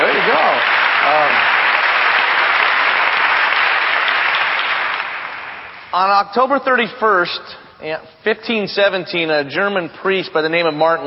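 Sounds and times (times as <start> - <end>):
church congregation applauding a song on Reformation Sunday: 0.0 - 6.4
speech: 6.0 - 11.0.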